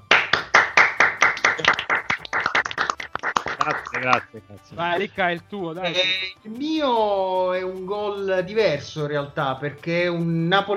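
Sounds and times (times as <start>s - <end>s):
group hand clapping: 0.0s - 4.4s
speech: 3.6s - 10.7s.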